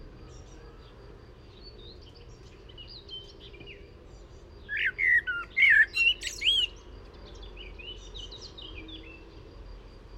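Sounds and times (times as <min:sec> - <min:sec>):
common blackbird singing: 0:00.1 - 0:09.3.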